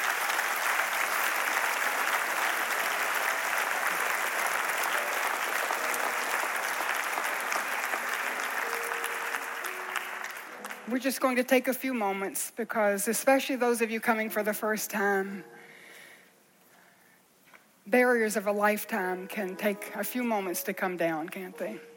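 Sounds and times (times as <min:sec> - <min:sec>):
audience applauding: 0:00.0 - 0:11.0
speech: 0:10.9 - 0:15.6, 0:17.9 - 0:21.9.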